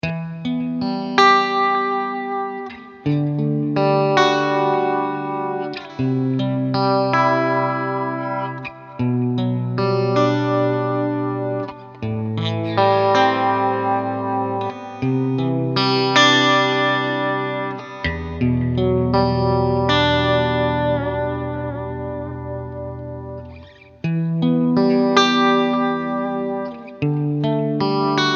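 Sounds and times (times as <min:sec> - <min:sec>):
ballad: 0:00.0 - 0:28.3.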